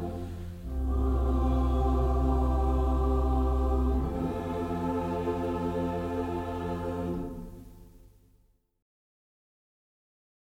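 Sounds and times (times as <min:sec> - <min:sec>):
choir singing hymns: 0:00.0 - 0:07.9.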